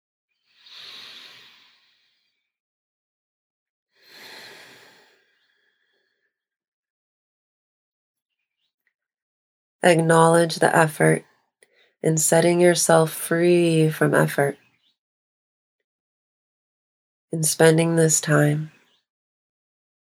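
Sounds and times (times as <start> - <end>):
long full breath during a guided relaxation exercise: 0.6 - 2.3, 4.0 - 5.9
speech: 9.8 - 11.3, 12.0 - 14.6, 17.3 - 18.7.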